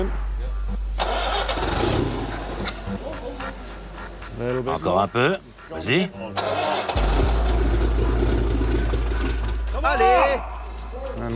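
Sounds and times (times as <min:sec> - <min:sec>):
old car engine starting: 0:00.9 - 0:03.1, 0:06.4 - 0:09.8
speech: 0:04.4 - 0:06.8, 0:09.8 - 0:10.5, 0:11.2 - 0:11.3.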